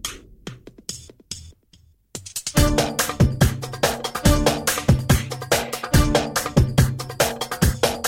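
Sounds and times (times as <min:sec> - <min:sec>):
techno music: 0:02.6 - 0:08.0.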